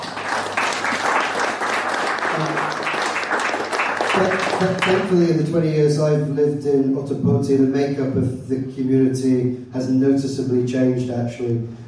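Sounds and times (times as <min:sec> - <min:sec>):
crowd applause: 0:00.0 - 0:05.1
speech: 0:04.2 - 0:11.8.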